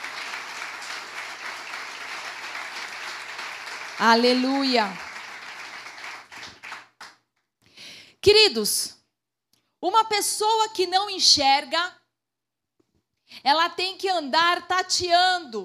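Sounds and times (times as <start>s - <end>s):
audience applause: 0.0s - 7.2s
speech: 4.0s - 5.0s, 8.2s - 9.0s, 9.8s - 12.0s, 13.3s - 15.6s.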